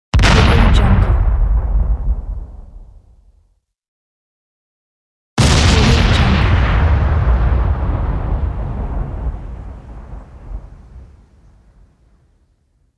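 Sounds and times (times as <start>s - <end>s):
explosions: 0.2s - 3.3s, 5.4s - 12.0s.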